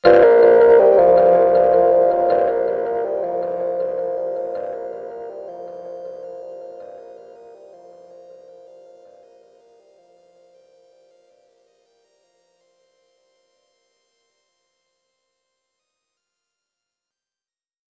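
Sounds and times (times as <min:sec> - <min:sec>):
overlay tone: 0:00.0 - 0:07.2.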